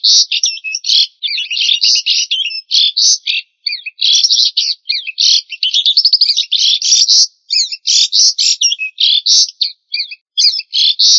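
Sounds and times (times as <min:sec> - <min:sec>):
songbird song: 0:00.0 - 0:11.1.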